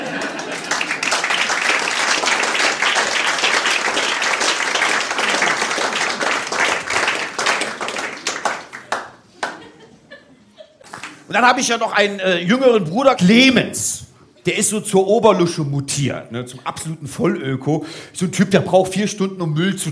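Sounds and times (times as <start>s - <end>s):
laughter: 0.0s - 1.1s, 8.8s - 11.3s
crowd applause: 0.0s - 9.9s
speech: 11.3s - 19.9s.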